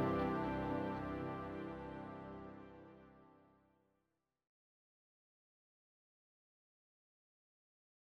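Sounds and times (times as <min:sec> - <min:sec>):
advertising music: 0:00.0 - 0:03.3.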